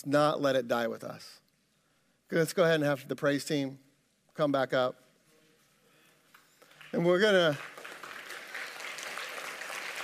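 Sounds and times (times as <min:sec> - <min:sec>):
speech: 0:00.0 - 0:01.4, 0:02.3 - 0:05.0, 0:06.9 - 0:07.8
crowd clapping: 0:06.6 - 0:10.0.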